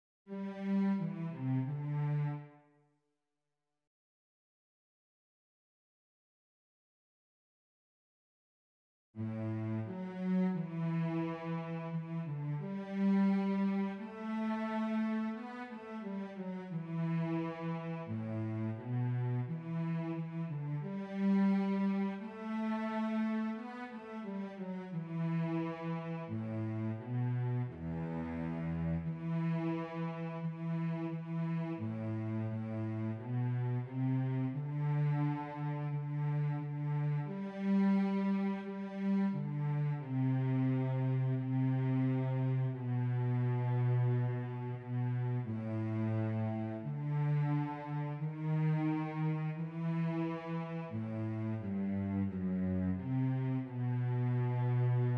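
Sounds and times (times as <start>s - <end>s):
cello: 0.3s - 2.8s, 9.2s - 55.1s.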